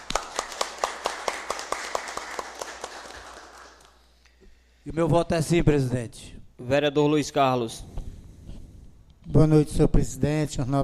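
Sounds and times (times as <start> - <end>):
round of applause: 0.0 - 4.0
speech: 4.8 - 7.9, 9.3 - 10.8.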